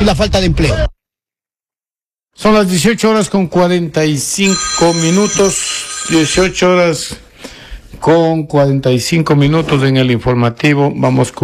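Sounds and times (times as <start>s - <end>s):
speech: 0.0s - 0.9s, 2.4s - 7.2s, 8.0s - 11.4s
telephone ringing with a high electronic trill: 4.4s - 7.1s.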